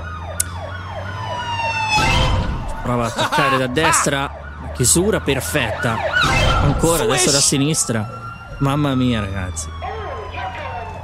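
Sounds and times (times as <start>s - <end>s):
police siren chasing the player in a video game: 0.0s - 11.0s
laughter: 2.8s - 4.1s
speech: 2.9s - 9.9s.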